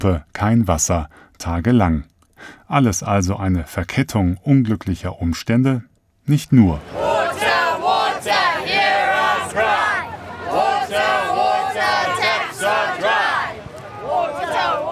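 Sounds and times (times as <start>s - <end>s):
speech: 0.0s - 7.1s
protesters chanting in unison about water shortage: 6.8s - 14.8s.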